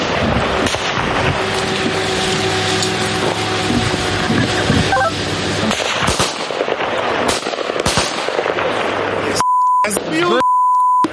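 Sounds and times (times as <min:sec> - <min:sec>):
enemy FPV drone buzzing overhead: 0:00.4 - 0:06.0
sharp electronic beeps: 0:04.9 - 0:05.2, 0:09.4 - 0:11.1
gunfire bursts: 0:05.7 - 0:08.8.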